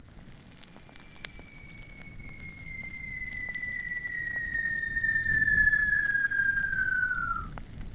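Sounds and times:
ambience: 0.1s - 7.6s.

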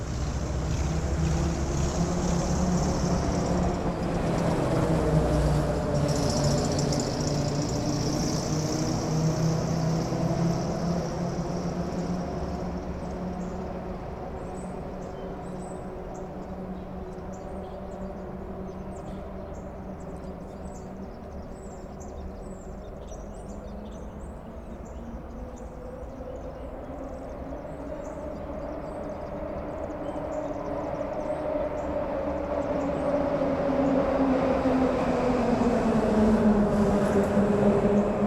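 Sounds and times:
vehicles crossing a grated bridge: 0.0s - 14.9s, 27.8s - 38.2s
suburban traffic at a traffic light: 0.0s - 38.2s.

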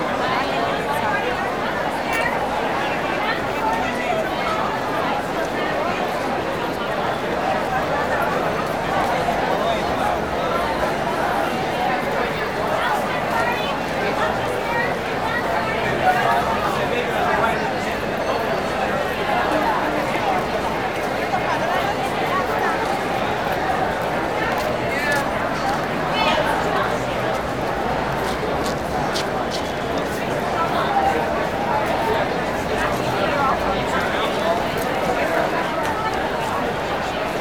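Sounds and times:
busy train station: 0.0s - 37.3s
crowd walla: 0.0s - 37.3s.

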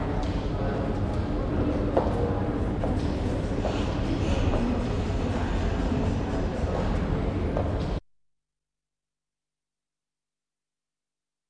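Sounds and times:
medium crowd murmur in a hotel lobby: 0.0s - 8.0s.

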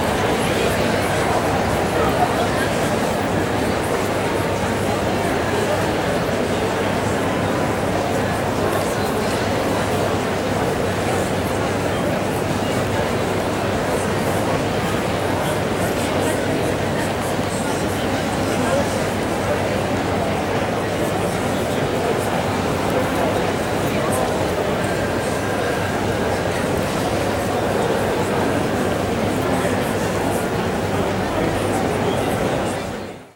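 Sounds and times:
busy train at a station: 0.0s - 33.3s
murmur of voices at a busy station: 0.0s - 33.3s.

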